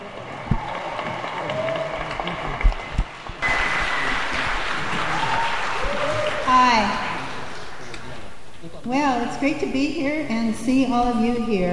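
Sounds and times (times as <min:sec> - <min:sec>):
audience applause: 0:00.0 - 0:08.3
speech: 0:09.4 - 0:11.7.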